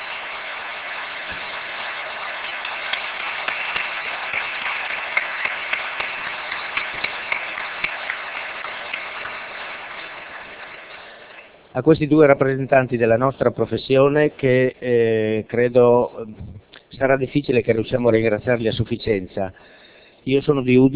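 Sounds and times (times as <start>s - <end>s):
audience applause: 0.0s - 11.5s
speech: 11.8s - 20.9s.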